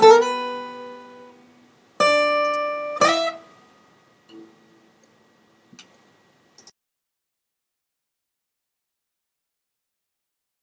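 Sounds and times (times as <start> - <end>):
solo guitar medley: 0.0 - 4.9.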